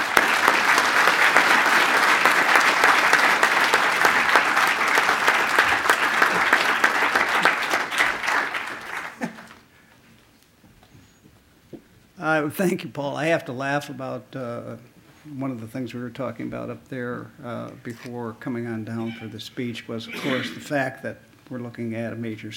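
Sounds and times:
audience applause welcoming a lecturer: 0.0s - 9.7s
speech: 12.4s - 22.5s.

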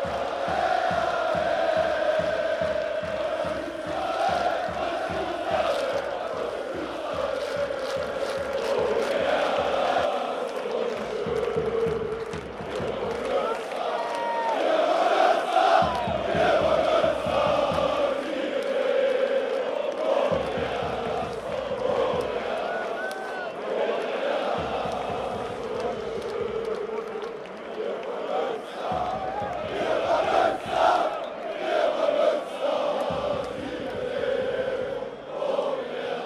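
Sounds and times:
fast regular drumbeat: 0.0s - 10.1s, 11.0s - 18.4s, 20.2s - 23.0s, 24.3s - 27.5s, 28.8s - 31.2s, 33.0s - 35.2s
football fans chanting and singing at a DFB-Pokal match: 0.0s - 36.2s
whoops and shouts: 13.4s - 14.7s, 22.6s - 23.6s.

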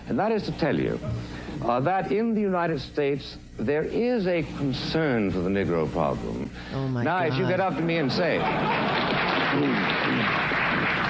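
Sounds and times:
speech: 0.1s - 10.6s
laughter: 7.2s - 11.0s
audience clapping: 8.4s - 11.0s.

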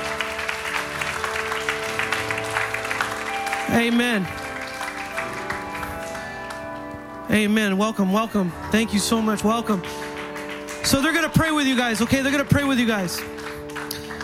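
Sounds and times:
audience clapping: 0.0s - 7.1s, 8.4s - 14.2s
speech: 3.7s - 4.4s, 7.3s - 10.0s, 10.9s - 13.4s.

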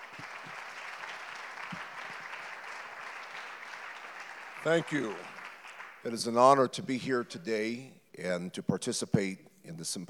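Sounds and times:
audience applause welcoming a guest speaker at a symposium: 0.0s - 6.2s
speech: 4.6s - 5.4s, 6.0s - 10.0s.

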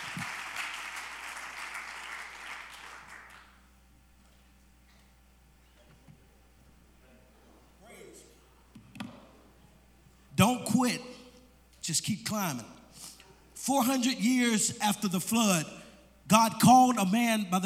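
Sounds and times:
audience clapping hands: 0.0s - 3.6s
speech: 10.4s - 11.1s, 11.9s - 17.6s.

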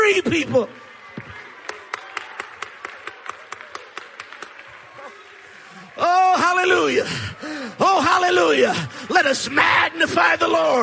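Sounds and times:
speech: 0.2s - 1.4s, 6.0s - 10.8s
audience clapping: 0.9s - 8.3s.

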